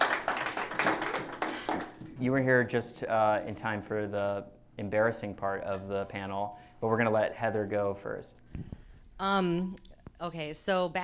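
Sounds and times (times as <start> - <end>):
audience applause: 0.0 - 2.0
speech: 2.2 - 11.0.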